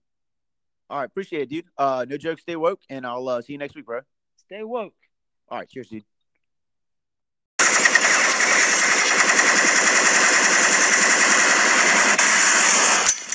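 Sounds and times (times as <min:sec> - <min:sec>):
speech: 0:00.9 - 0:06.1
automatic gunfire sound effect: 0:07.6 - 0:12.9.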